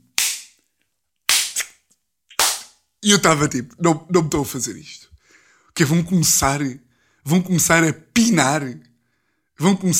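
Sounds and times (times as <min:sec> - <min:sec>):
person imitating slapping sounds: 0:00.0 - 0:00.6, 0:01.2 - 0:02.8
speech: 0:03.0 - 0:05.1, 0:05.8 - 0:08.9, 0:09.6 - 0:09.9.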